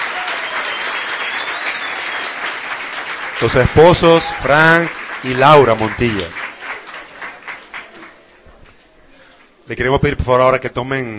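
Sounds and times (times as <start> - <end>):
audience applause: 0.0 - 8.4
speech: 3.4 - 6.4, 9.7 - 11.1.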